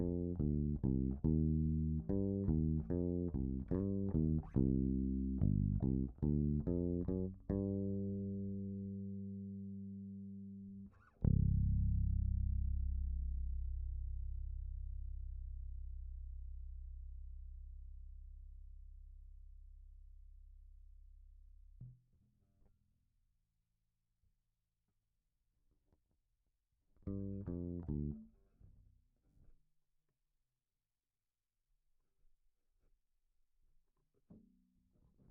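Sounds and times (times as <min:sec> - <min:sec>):
bass effects: 0:00.0 - 0:21.8, 0:27.1 - 0:28.3.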